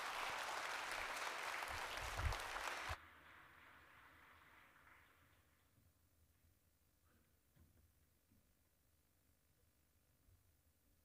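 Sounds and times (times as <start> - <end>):
church congregation at a Sunday service applauding a Southern Gospel group: 0.0 - 5.6.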